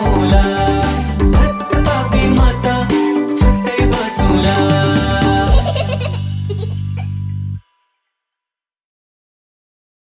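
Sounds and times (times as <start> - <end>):
children's song: 0.0 - 6.7
laughter: 5.4 - 7.1.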